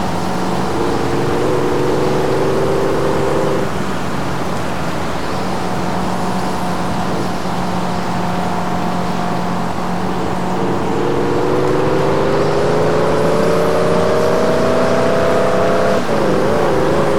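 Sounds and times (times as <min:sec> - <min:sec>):
Aston Martin DB9 V12 engine: 0:00.0 - 0:17.1.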